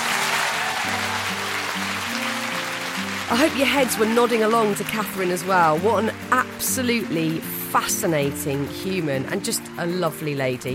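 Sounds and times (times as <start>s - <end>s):
audience applause: 0.0s - 8.2s
sustained musical chord progression: 0.0s - 9.3s
speech: 3.3s - 10.7s.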